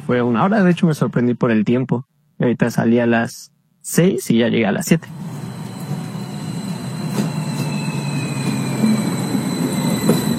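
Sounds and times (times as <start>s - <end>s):
speech: 0.1s - 5.4s
El tren insurgente passenger train running on rails in central Mexico: 5.1s - 10.3s.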